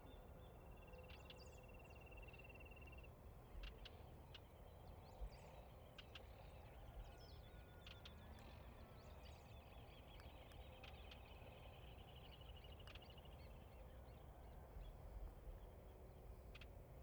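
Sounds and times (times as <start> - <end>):
countryside dawn ambience in Trinidad Uruguay: 0.0 - 17.0.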